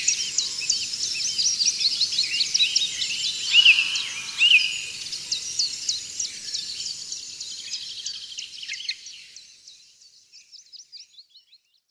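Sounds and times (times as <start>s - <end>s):
dawn chorus: 2.0s - 6.2s.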